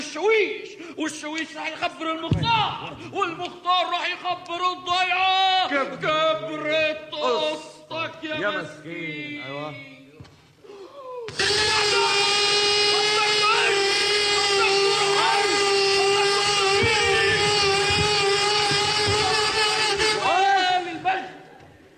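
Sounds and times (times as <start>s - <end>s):
speech: 0.0s - 10.0s
power drill running: 11.3s - 20.6s.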